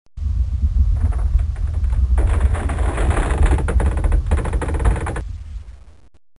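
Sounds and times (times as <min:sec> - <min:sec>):
wooden house collapsing in an earthquake: 0:01.0 - 0:05.3.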